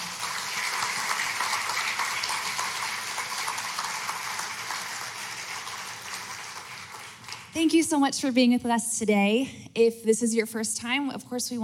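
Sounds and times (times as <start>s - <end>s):
audience applause: 0.0s - 7.6s
speech: 7.6s - 11.6s.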